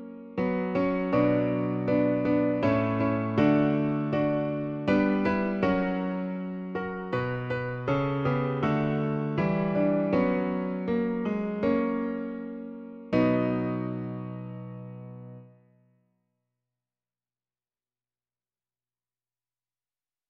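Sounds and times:
piano version: 0.0 - 15.6.

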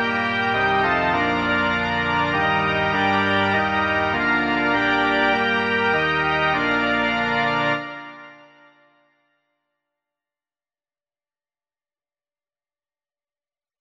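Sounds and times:
organ: 0.0 - 8.9.

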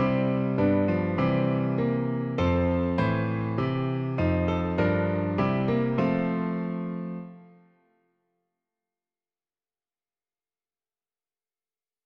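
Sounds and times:
piano: 0.0 - 8.0.

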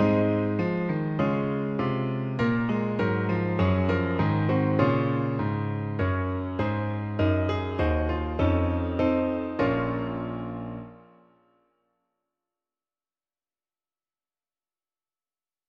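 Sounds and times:
piano: 0.0 - 11.9.

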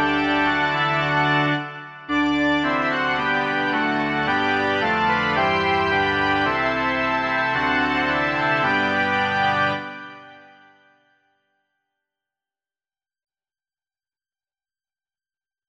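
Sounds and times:
organ: 0.0 - 11.0.

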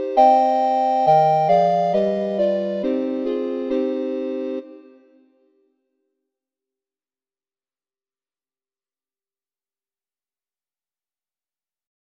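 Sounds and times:
recorder ensemble: 0.0 - 5.2.

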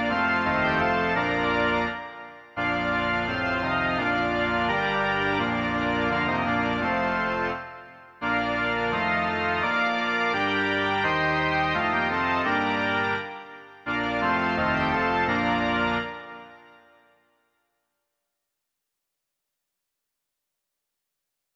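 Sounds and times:
organ: 0.0 - 17.0.

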